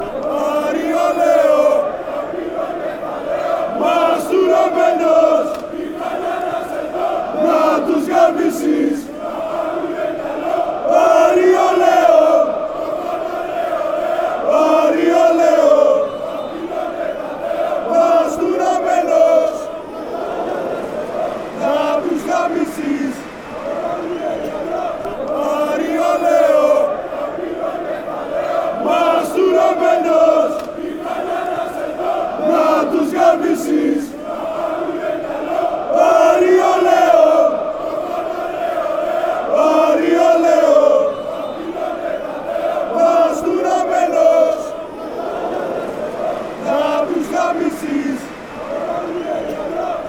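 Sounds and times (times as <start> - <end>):
chant: 0.0 - 50.0.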